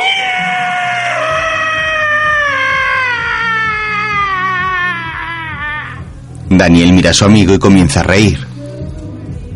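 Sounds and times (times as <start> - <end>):
man imitating a pig squealing: 0.0 - 6.1
speech: 6.6 - 8.5.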